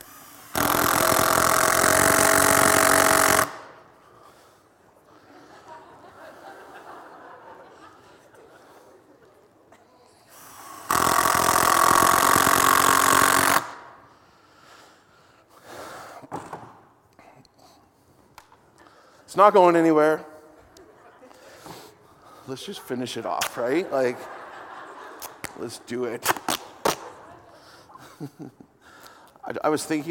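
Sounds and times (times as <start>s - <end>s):
power drill running: 0.0s - 3.8s, 10.3s - 13.8s
laughter: 5.0s - 9.8s, 20.7s - 21.9s, 23.5s - 25.9s, 26.9s - 28.8s
speech: 19.4s - 20.3s, 22.5s - 24.4s, 25.6s - 26.4s, 28.2s - 28.7s, 29.5s - 30.0s.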